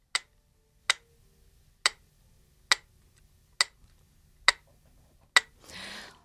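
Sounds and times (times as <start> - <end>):
real mechanical metronome ticking: 0.0 - 1.1, 1.8 - 2.0, 2.7 - 2.9, 3.6 - 4.7, 5.3 - 5.6.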